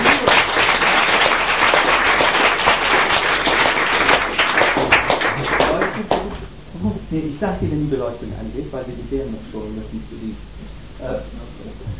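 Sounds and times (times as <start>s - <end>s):
crowd applauding: 0.0s - 6.5s
speech: 7.2s - 11.9s.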